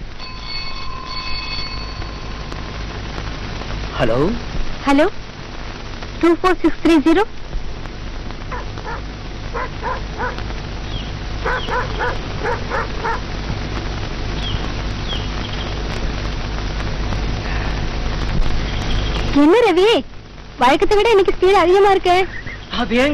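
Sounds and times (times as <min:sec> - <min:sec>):
steady hiss of rain-like noise: 0:00.0 - 0:23.1
speech: 0:04.0 - 0:05.2, 0:06.2 - 0:07.4, 0:09.0 - 0:10.6, 0:11.4 - 0:13.4, 0:19.4 - 0:23.1
Alsatian dog barking: 0:08.5 - 0:10.4, 0:11.4 - 0:13.3.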